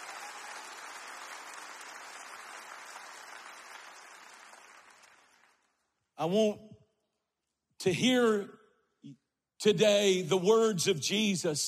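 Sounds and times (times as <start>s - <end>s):
audience clapping hands: 0.0s - 6.0s
speech: 6.2s - 6.7s, 7.8s - 11.6s.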